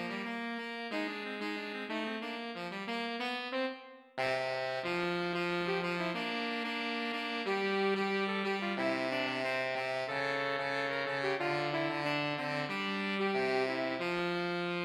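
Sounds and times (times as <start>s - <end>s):
jazzy alto sax: 0.0s - 14.8s.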